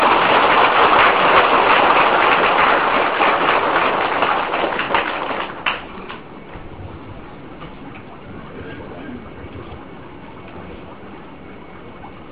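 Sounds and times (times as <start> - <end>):
audience applause: 0.0 - 6.2.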